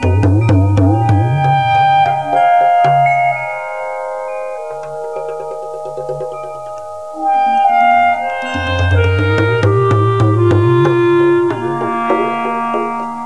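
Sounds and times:
rhythm: 0.0 - 13.2.

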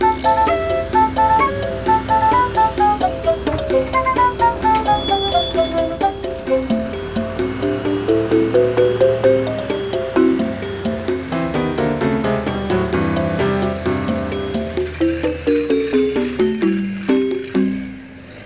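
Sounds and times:
music: 0.0 - 18.4.

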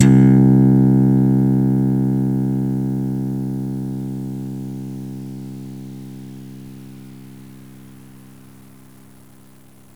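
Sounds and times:
slap bass: 0.0 - 3.7.

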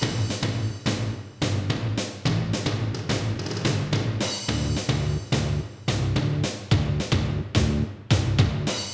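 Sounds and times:
rock music: 0.0 - 8.9.

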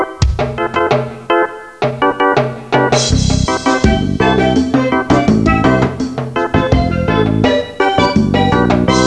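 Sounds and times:
reggae music: 0.2 - 9.0.

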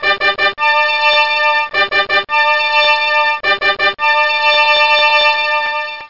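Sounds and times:
trumpets: 0.0 - 6.0.

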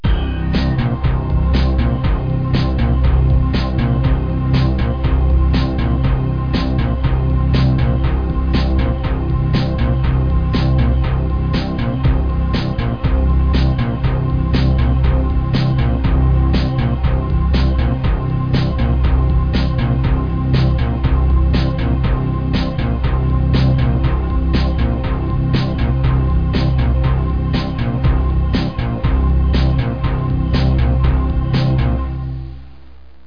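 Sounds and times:
dance music loop: 0.0 - 33.2.

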